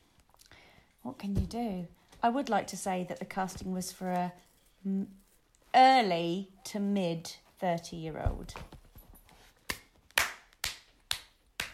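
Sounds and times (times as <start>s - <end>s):
speech: 1.0s - 5.2s, 5.8s - 8.8s
person clapping hands: 9.7s - 11.7s.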